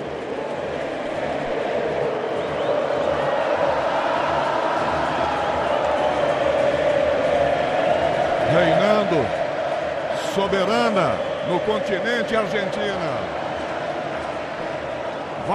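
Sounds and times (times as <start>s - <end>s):
stadium crowd of Argentine fans singing: 0.0s - 15.4s
speech: 10.4s - 13.4s.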